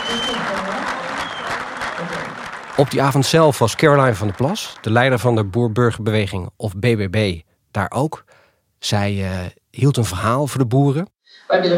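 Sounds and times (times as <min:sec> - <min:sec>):
audience clapping along in a hall: 0:00.0 - 0:06.0
speech: 0:02.8 - 0:11.7.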